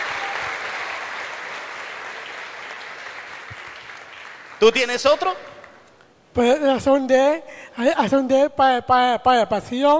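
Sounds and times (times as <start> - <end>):
audience applause: 0.0 - 4.7
speech: 4.6 - 5.5, 6.4 - 9.9.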